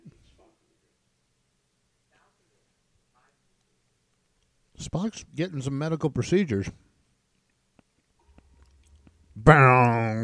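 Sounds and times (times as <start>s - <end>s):
low steady hum: 0.0s - 10.2s
speech: 4.8s - 6.9s, 9.5s - 9.7s
chewing: 7.3s - 9.3s.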